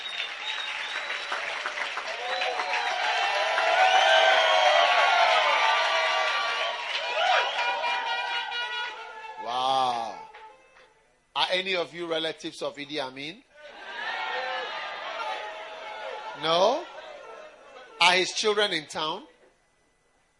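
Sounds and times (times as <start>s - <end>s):
crowd clapping and cheering: 0.0s - 10.9s, 13.8s - 17.9s
shouts and whoops: 2.1s - 9.7s, 13.6s - 17.6s
speech: 11.6s - 13.5s, 16.4s - 16.9s, 18.1s - 19.3s.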